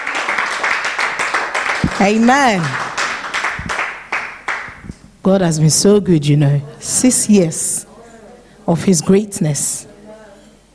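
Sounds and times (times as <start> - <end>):
audience clapping: 0.0 - 5.0
speech: 2.0 - 2.8, 5.2 - 7.9, 8.7 - 9.9.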